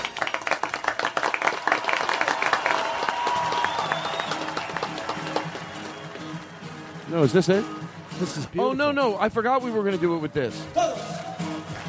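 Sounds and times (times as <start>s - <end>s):
audience applauding in a concert hall: 0.0s - 9.1s, 11.0s - 11.8s
speech: 7.1s - 10.8s.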